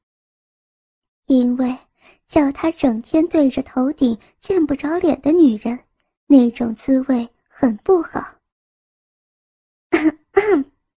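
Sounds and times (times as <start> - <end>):
speech: 1.3 - 8.4, 10.0 - 10.7
woman fake coughing: 10.0 - 10.7.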